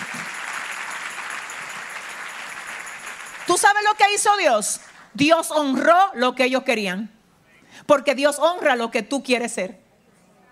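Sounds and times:
audience applause: 0.0 - 5.0
speech: 3.5 - 9.8.

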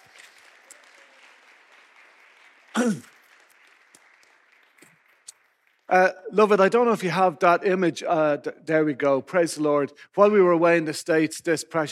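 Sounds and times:
audience applause: 0.0 - 6.1
speech: 2.8 - 3.1, 5.9 - 11.9.

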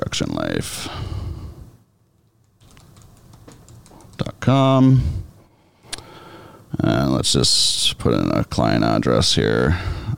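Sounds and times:
speech: 0.1 - 1.1, 4.5 - 5.2, 6.8 - 10.1
typing on a computer keyboard: 2.2 - 4.4.

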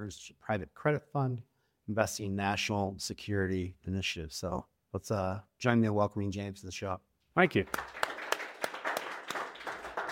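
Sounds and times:
speech: 0.0 - 8.0
studio audience clapping on a talk show: 7.6 - 10.0.

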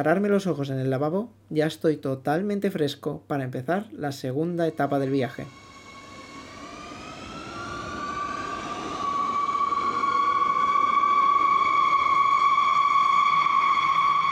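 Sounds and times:
speech: 0.0 - 5.6
underground metro train accelerating: 4.7 - 14.3.

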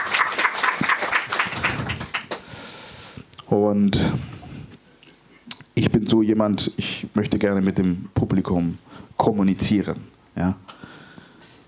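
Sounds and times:
applause from the audience: 0.0 - 2.5
speech: 3.5 - 4.3, 6.0 - 10.7.

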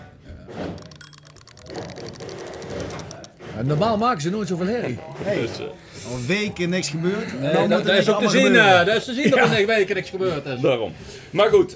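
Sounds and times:
mechanical kitchen timer being wound: 0.6 - 4.2
speech: 3.6 - 11.7.

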